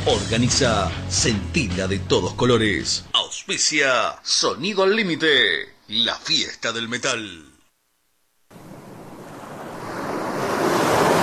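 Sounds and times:
speech: 0.1s - 7.5s
ocean surf rushing in at a beach: 8.5s - 11.2s.

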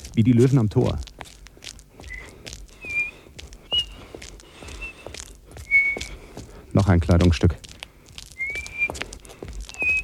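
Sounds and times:
shuffling noises: 0.0s - 10.0s
speech: 0.2s - 1.1s, 6.9s - 7.6s
person whistling: 2.1s - 4.0s, 4.8s - 5.0s, 5.6s - 6.1s, 8.4s - 9.0s, 9.7s - 10.0s.

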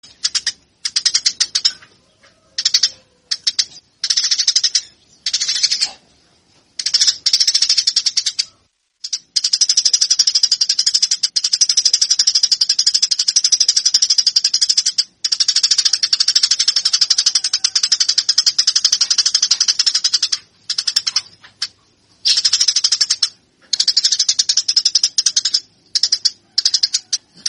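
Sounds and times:
Eurasian tree sparrow song of rapid chattering chirps: 0.0s - 6.0s, 6.8s - 27.4s.

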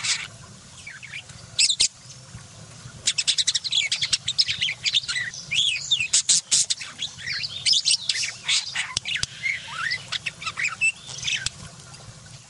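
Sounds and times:
budgerigar chattering: 0.0s - 0.3s, 3.1s - 11.6s.

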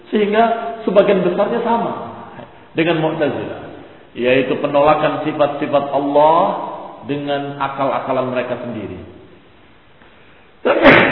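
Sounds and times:
speech: 0.1s - 2.0s, 2.8s - 9.2s
sneeze: 10.6s - 11.1s.

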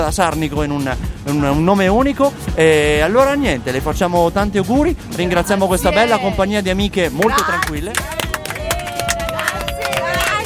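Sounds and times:
speech: 0.1s - 8.2s
crowd voices: 5.2s - 10.4s
applause during a radio birthday interview with a group of friends: 7.1s - 10.4s.

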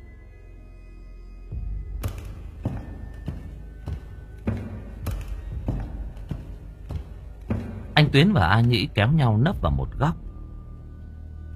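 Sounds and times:
footsteps approaching outside: 1.9s - 8.8s
speech: 8.1s - 10.2s.

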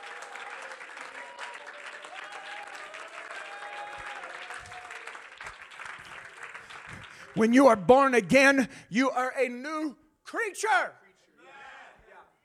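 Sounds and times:
audience clapping hands: 0.0s - 8.6s
speech: 7.4s - 11.0s.

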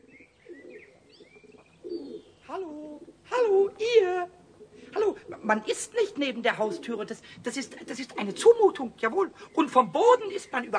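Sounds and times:
pigeons cooing: 0.0s - 10.7s
speech: 5.5s - 10.7s.

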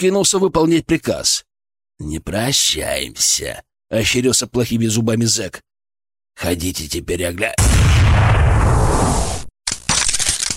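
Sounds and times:
speech: 0.0s - 5.7s, 6.4s - 9.4s
gunshot sound effect in an audiobook: 7.6s - 8.7s.

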